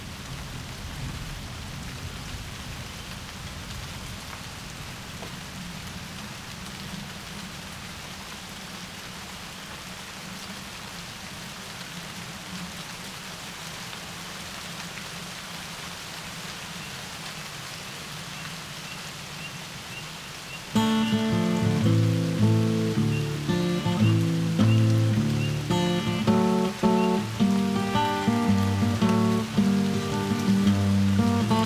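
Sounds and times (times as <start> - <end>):
light rain: 0.0 - 31.6
music: 20.8 - 31.6.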